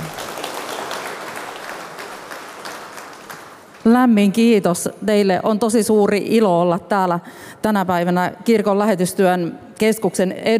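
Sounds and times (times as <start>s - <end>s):
audience applause: 0.0s - 3.8s
speech: 3.9s - 10.5s.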